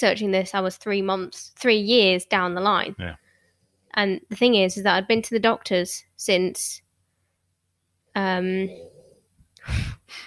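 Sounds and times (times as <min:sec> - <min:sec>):
speech: 0:00.0 - 0:03.2, 0:03.9 - 0:06.8, 0:08.2 - 0:08.9, 0:09.6 - 0:10.2
person imitating snoring: 0:08.5 - 0:09.2.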